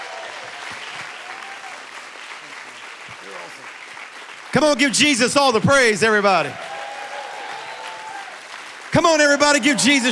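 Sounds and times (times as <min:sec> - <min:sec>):
voices and cheers: 0:00.0 - 0:02.0, 0:04.5 - 0:10.1
church congregation applauding a guest pastor: 0:00.0 - 0:10.1
speech: 0:04.5 - 0:06.6, 0:09.0 - 0:10.1.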